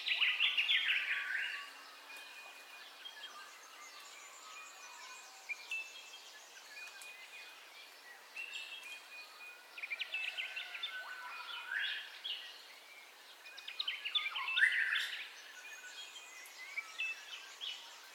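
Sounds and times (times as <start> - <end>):
several birds chirping and whistling in a dawn chorus: 0.0 - 18.1.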